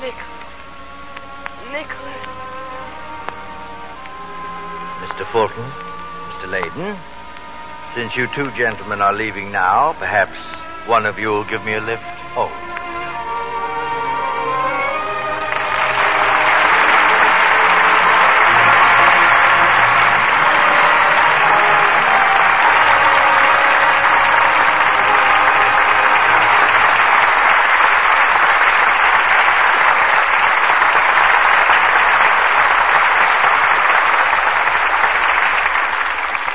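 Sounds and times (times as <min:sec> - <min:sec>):
brief musical opening: 0:00.0 - 0:27.9
audience applause: 0:01.4 - 0:36.5
speech: 0:01.7 - 0:02.5, 0:05.2 - 0:07.2, 0:07.9 - 0:12.7.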